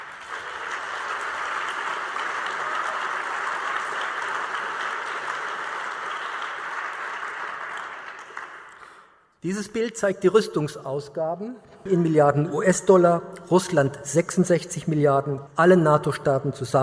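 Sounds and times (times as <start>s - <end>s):
audience applause: 0.0s - 9.0s
speech: 9.4s - 16.8s.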